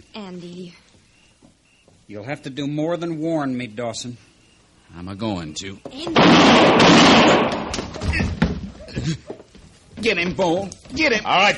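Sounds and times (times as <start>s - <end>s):
speech: 0.2s - 0.9s, 2.1s - 4.3s, 4.9s - 8.4s, 9.0s - 9.3s, 10.0s - 11.5s
gunshot during an armed standoff in a Western drama: 6.2s - 8.3s.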